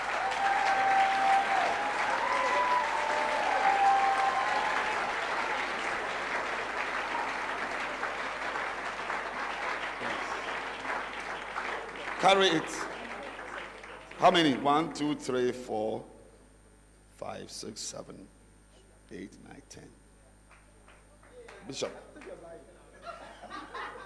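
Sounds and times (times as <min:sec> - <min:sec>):
crowd clapping: 0:00.0 - 0:14.9, 0:20.5 - 0:22.6
speech: 0:12.3 - 0:12.9, 0:14.2 - 0:16.1, 0:17.4 - 0:18.4, 0:19.1 - 0:20.0, 0:21.6 - 0:22.7
laughter: 0:22.8 - 0:24.0.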